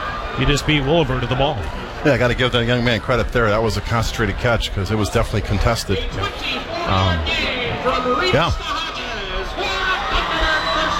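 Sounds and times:
stadium crowd cheering: 0.0 - 3.0, 5.9 - 10.9
speech: 0.4 - 8.9.

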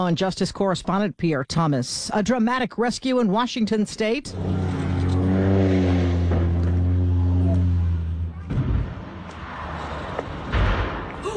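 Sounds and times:
speech: 0.0 - 4.9
seaplane low droning rumble: 4.3 - 11.3.

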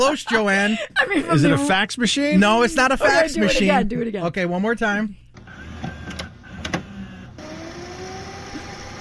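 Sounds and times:
speech: 0.0 - 5.2
VHS tape rewinding in a VCR: 5.4 - 9.0.

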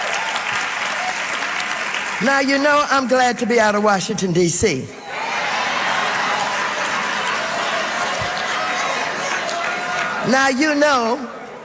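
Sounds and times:
audience applause: 0.0 - 2.5, 5.1 - 10.7
speech: 2.2 - 5.0, 10.3 - 11.4.

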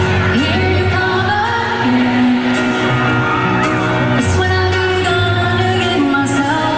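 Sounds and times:
concert crowd roaring with approval: 0.0 - 4.6
concert crowd singing along: 0.0 - 6.7.

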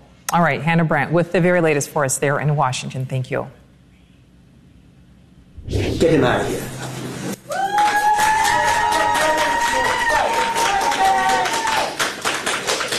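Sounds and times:
speech: 0.3 - 3.6, 6.0 - 6.8
cheering shout: 7.5 - 12.0
crowd applause in a New York courtroom: 7.5 - 12.9.

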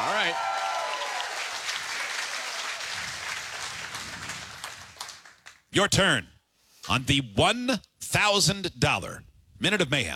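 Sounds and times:
studio audience applause: 0.0 - 5.5
speech: 5.7 - 6.3, 6.9 - 10.1.

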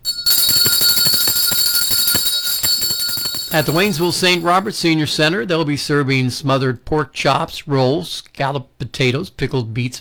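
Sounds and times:
lunch bell ringing: 0.0 - 4.8
speech: 3.5 - 9.9.

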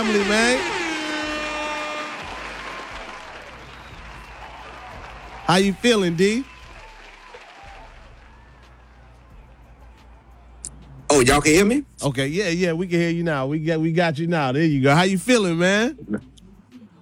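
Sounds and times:
speech: 0.0 - 0.8, 5.5 - 6.5, 11.2 - 16.3
audience applause: 0.0 - 10.2.

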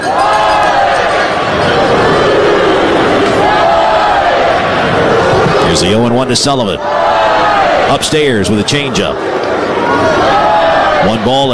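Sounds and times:
stadium crowd chanting a cheer: 0.0 - 11.5
speech: 5.8 - 7.0, 7.9 - 10.3, 11.0 - 11.5.

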